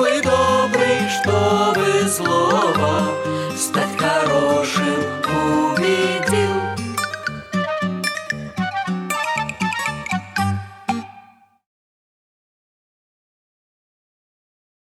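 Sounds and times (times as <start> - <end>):
fairy tale song: 0.0 - 11.6.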